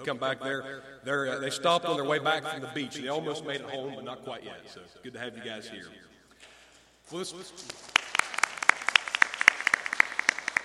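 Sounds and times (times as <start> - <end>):
speech: 0.0 - 6.1, 7.1 - 7.9
audience applause: 7.7 - 10.6.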